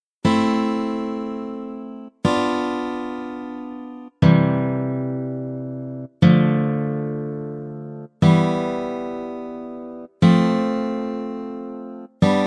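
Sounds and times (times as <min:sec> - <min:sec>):
triads in A minor: 0:00.2 - 0:12.4.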